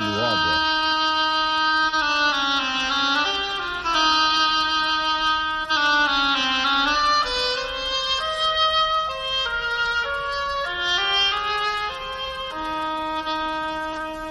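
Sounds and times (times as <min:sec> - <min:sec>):
oboe melody: 0:00.0 - 0:14.2.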